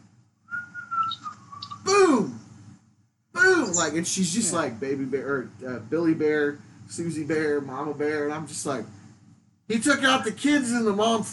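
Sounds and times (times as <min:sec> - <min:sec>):
person whistling a tune: 0:00.5 - 0:01.7
speech: 0:03.8 - 0:09.0, 0:09.7 - 0:11.3.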